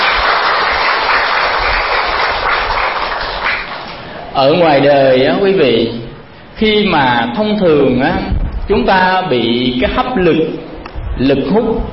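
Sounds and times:
crowd applauding: 0.0s - 4.1s
speech: 4.4s - 6.0s, 6.6s - 11.9s.

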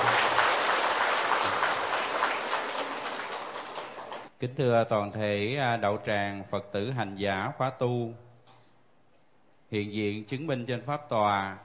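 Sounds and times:
audience applause welcoming a speaker: 0.0s - 4.3s
speech: 4.4s - 8.2s, 9.7s - 11.6s.

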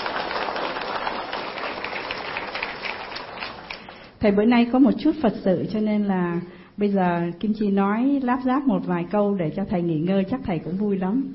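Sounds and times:
audience applause: 0.0s - 4.1s
speech: 4.2s - 11.3s.

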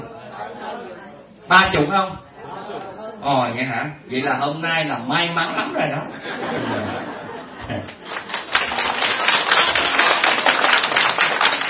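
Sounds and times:
speech: 1.5s - 2.3s, 3.2s - 7.0s
laughter: 5.4s - 8.6s
women in an audience clapping: 7.8s - 11.6s.

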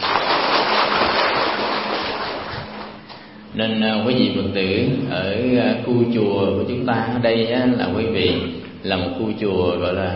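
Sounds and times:
audience applause: 0.0s - 3.0s
speech: 3.6s - 10.1s.

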